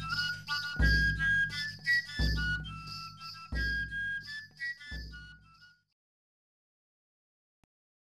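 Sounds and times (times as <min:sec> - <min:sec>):
willow flute: 0:00.0 - 0:06.0.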